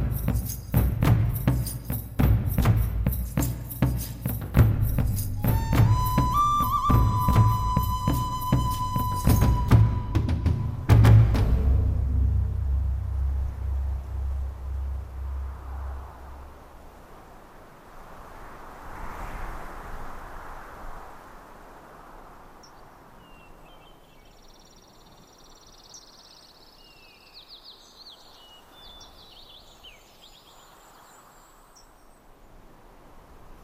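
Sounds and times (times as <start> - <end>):
forest music: 0.0 - 16.8.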